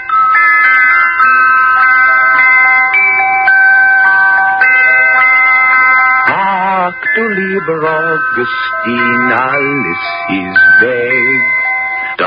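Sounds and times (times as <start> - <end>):
little bells on a boiling cooking pot playing a tune: 0.0 - 12.2
speech: 6.9 - 11.5.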